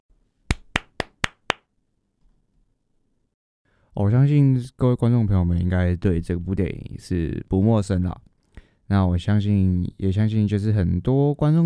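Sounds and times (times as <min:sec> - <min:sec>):
hand claps: 0:00.5 - 0:01.7
speech: 0:04.0 - 0:08.3, 0:08.9 - 0:11.6.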